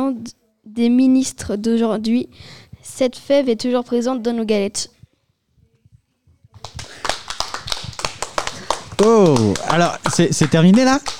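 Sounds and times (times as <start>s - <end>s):
speech: 0.1s - 5.0s, 9.0s - 11.1s
applause: 6.6s - 11.1s.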